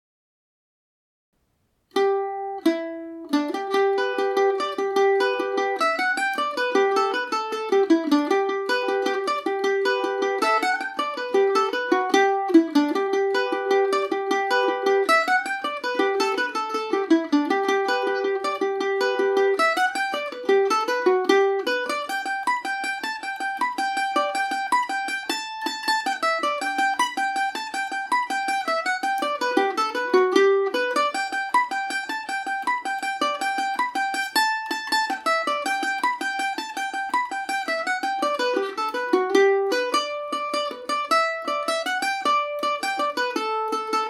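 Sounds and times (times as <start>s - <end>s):
G major Paris swing on Irish mandolin: 1.8s - 44.0s.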